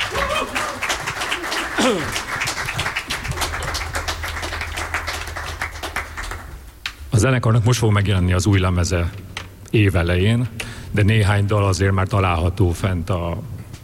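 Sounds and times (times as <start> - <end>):
audience applause: 0.0 - 6.6
low hum: 0.9 - 12.5
speech: 1.8 - 2.2, 7.2 - 13.5
brief tonal sounds: 2.6 - 7.2.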